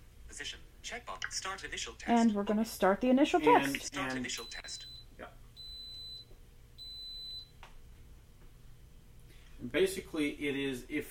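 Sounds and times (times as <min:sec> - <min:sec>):
low hum: 0:00.0 - 0:11.0
speech: 0:00.4 - 0:05.3, 0:09.6 - 0:11.0
pressure cooker beeping: 0:05.6 - 0:06.2, 0:06.8 - 0:07.5.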